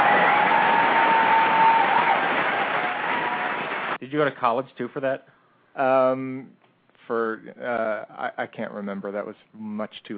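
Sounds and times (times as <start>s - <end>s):
audience applause: 0.0s - 4.0s
speech: 4.1s - 10.1s.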